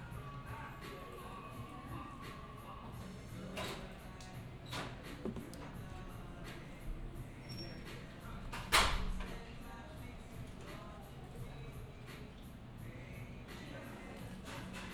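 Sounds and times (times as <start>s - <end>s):
cafe ambience: 0.0s - 8.7s, 9.3s - 14.9s.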